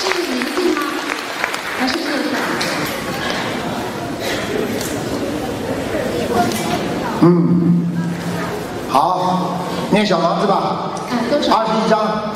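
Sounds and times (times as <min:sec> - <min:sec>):
audience applause at a gathering: 0:00.0 - 0:05.3
voices chattering: 0:00.0 - 0:12.3
speech: 0:07.2 - 0:07.6, 0:10.0 - 0:12.3.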